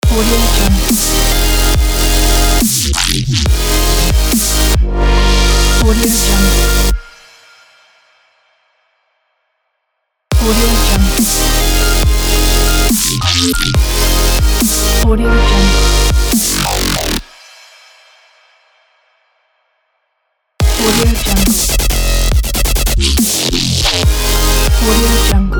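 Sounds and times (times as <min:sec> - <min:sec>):
dubstep logo sound: 0:00.0 - 0:07.0, 0:10.3 - 0:17.2, 0:20.6 - 0:25.5.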